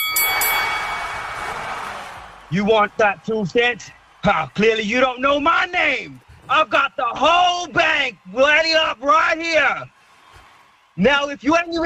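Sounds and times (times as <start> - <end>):
wrestling ring bell clanging: 0.0 - 1.8
speech: 2.5 - 9.9, 11.0 - 11.8.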